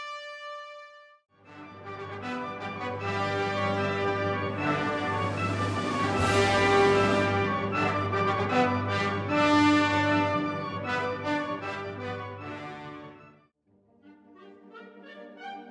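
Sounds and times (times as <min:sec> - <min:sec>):
concert band playing an overture: 0:01.7 - 0:12.5.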